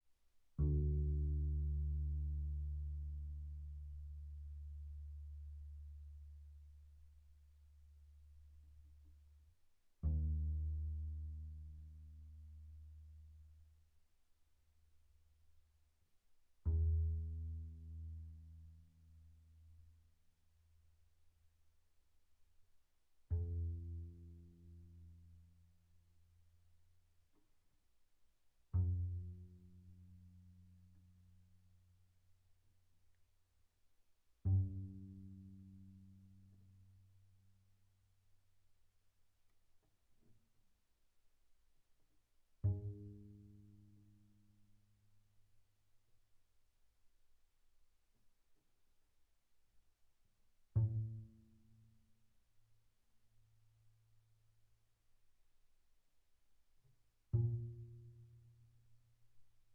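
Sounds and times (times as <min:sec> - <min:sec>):
very soft double bass pizzicato on the D string from D2 to B2: 0:00.5 - 0:13.8, 0:16.5 - 0:20.4, 0:23.2 - 0:26.6, 0:28.6 - 0:32.5, 0:34.3 - 0:37.9, 0:42.6 - 0:45.2, 0:50.6 - 0:52.3, 0:56.9 - 0:59.7.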